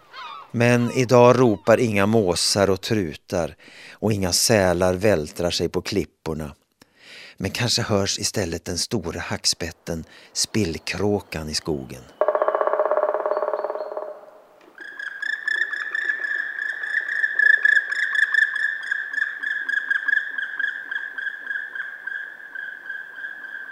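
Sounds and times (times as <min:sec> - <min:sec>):
speech: 0:00.5 - 0:06.6, 0:07.4 - 0:12.2
European nightjar churring song at night: 0:12.1 - 0:20.8.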